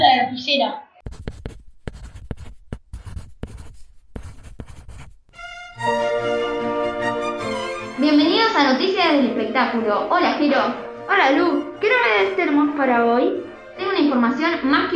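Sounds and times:
speech: 0:00.5 - 0:00.9, 0:08.1 - 0:14.9
pen writing a signature: 0:01.0 - 0:05.3
bright tonal musical jingle: 0:05.4 - 0:14.6.

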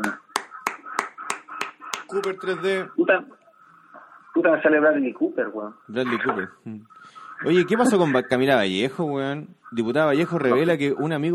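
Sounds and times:
sharp loud claps in steady rhythm: 0:00.0 - 0:02.5
speech: 0:02.1 - 0:03.4, 0:04.4 - 0:11.3.

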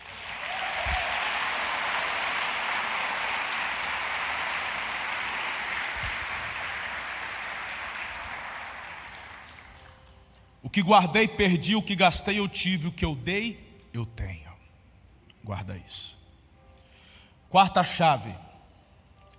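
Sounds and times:
audience applauding: 0:00.0 - 0:10.1
speech: 0:10.7 - 0:14.5, 0:15.4 - 0:16.2, 0:17.5 - 0:18.4.

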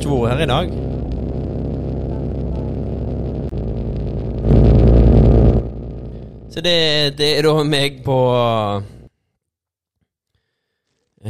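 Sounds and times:
snowmobile engine driving past: 0:00.0 - 0:07.1
speech: 0:00.1 - 0:00.9, 0:06.6 - 0:09.0.

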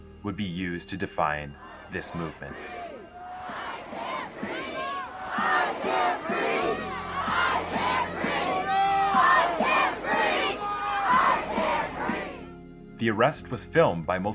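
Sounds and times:
speech: 0:00.2 - 0:02.9, 0:13.0 - 0:14.3
bystanders yelling at police: 0:01.6 - 0:12.4.

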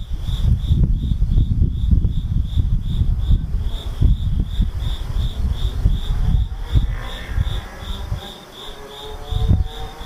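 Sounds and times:
low uneven rumbling and thumping: 0:00.0 - 0:08.2
insect chirping in a high trill: 0:00.0 - 0:10.0.

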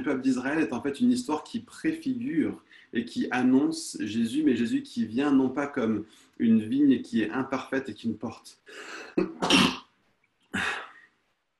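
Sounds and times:
speech: 0:00.0 - 0:09.8
sneeze: 0:09.2 - 0:09.9.

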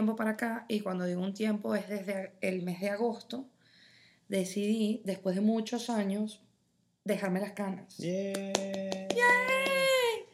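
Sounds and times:
speech: 0:00.0 - 0:03.5, 0:04.3 - 0:06.4, 0:07.1 - 0:09.5
hand clapping: 0:08.3 - 0:10.2.

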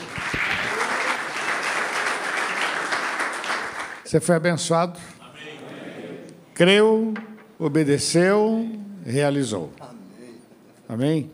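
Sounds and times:
audience applause: 0:00.0 - 0:04.1
speech: 0:04.1 - 0:05.2, 0:06.6 - 0:10.0, 0:10.9 - 0:11.3.

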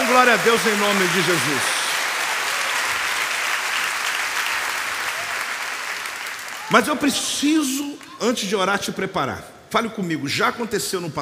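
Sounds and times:
audience applause: 0:00.0 - 0:08.0
speech: 0:00.2 - 0:01.8, 0:06.7 - 0:11.2.

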